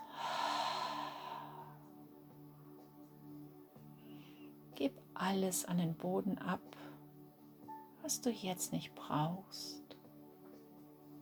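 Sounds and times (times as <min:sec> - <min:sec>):
deep slow breath in through the nose and out through the mouth during a relaxation exercise: 0:00.0 - 0:01.8
speech: 0:04.8 - 0:06.9, 0:08.1 - 0:09.8.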